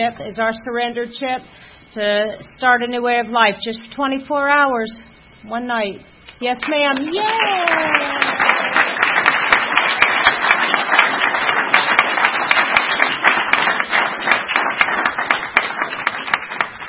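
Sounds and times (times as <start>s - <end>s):
speech: 0.0s - 8.8s
group of people clapping: 6.6s - 16.8s.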